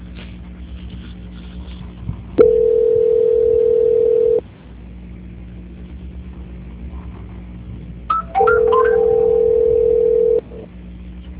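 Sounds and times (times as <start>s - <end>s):
telephone tone during a call transfer: 2.4s - 4.4s, 8.1s - 10.6s.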